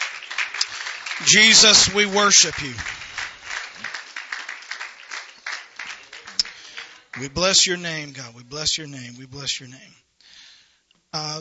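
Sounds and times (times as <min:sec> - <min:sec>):
audience clapping hands: 0:00.0 - 0:08.3
speech: 0:01.2 - 0:03.1, 0:07.2 - 0:10.0, 0:11.1 - 0:11.3.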